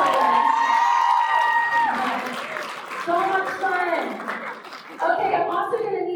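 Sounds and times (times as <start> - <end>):
sustained high whoop: 0.0 - 2.3
audience cheering: 0.0 - 4.2
audience clapping: 0.0 - 6.0.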